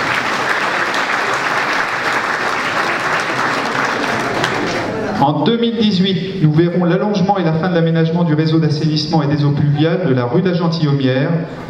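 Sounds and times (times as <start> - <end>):
audience applause: 0.0 - 5.0
speech: 5.2 - 11.6.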